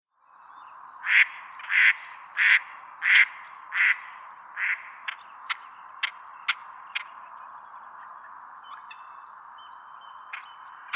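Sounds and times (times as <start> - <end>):
female mallard quacking: 1.0 - 4.9.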